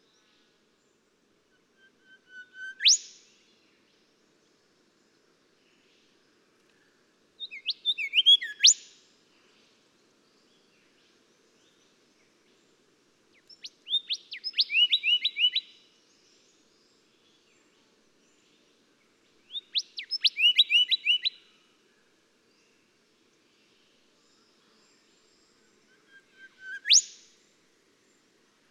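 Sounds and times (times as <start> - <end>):
golden whistler singing: 1.8 - 3.1, 7.4 - 8.8, 13.6 - 15.7, 19.6 - 21.4, 25.9 - 27.2.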